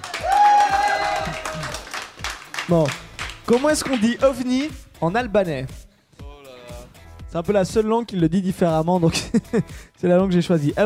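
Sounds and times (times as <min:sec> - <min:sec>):
applause: 0:00.0 - 0:04.8
laughter: 0:01.1 - 0:01.9, 0:09.1 - 0:09.7
speech: 0:02.7 - 0:05.8, 0:07.3 - 0:10.8.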